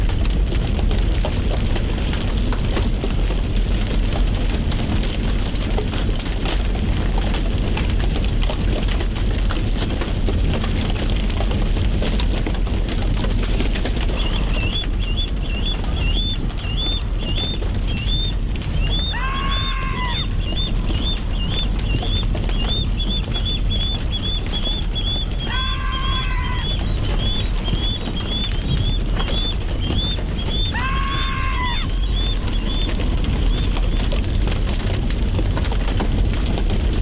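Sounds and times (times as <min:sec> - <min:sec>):
fire burning a fir tree on Burnaby Mountain, British Columbia: 0:00.0 - 0:36.9
birds chirping: 0:14.0 - 0:34.2.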